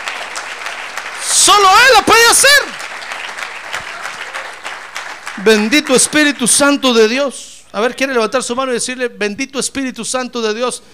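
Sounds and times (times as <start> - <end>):
audience applause: 0.0 - 6.7
speech: 1.4 - 2.8, 5.4 - 10.9.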